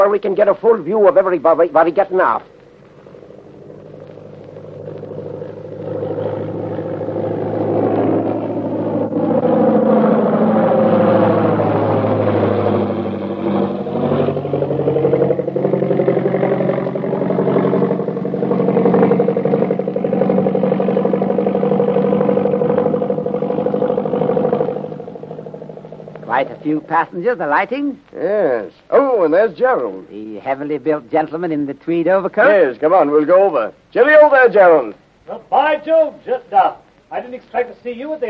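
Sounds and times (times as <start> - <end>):
aircraft engine drone as a plane rolls in after landing: 0.0 - 28.0
speech: 0.1 - 2.5, 26.9 - 38.2.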